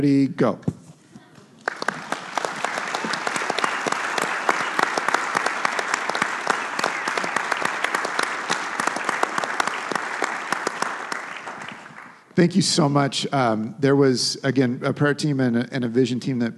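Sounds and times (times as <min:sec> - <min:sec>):
speech: 0:00.0 - 0:00.8, 0:12.4 - 0:16.5
audience applause: 0:01.6 - 0:12.3.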